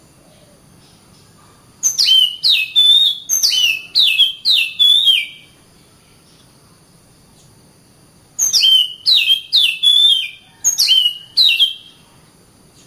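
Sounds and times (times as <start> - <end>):
Oriental magpie-robin singing clear whistled notes: 1.8 - 5.6, 8.4 - 12.0.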